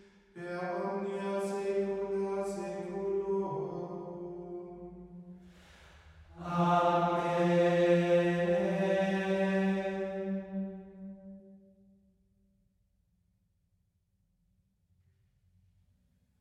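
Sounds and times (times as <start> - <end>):
Latin Mass collect chant: 0.4 - 4.9, 6.4 - 11.1.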